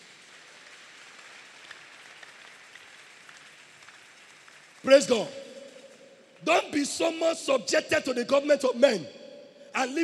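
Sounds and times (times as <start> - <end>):
crowd clapping hands: 0.0 - 6.6
speech: 4.8 - 5.4, 6.4 - 9.2, 9.8 - 10.0.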